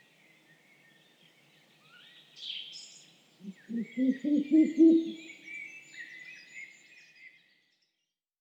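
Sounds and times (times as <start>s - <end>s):
Ural owl Strix uralensis calling at night: 3.4s - 5.3s.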